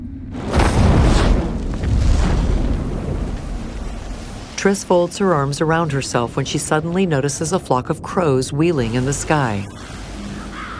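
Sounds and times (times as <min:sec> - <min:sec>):
explosive boom: 0:00.3 - 0:04.4
patch of earth bursting into flames: 0:00.3 - 0:05.1
speech: 0:04.6 - 0:10.0.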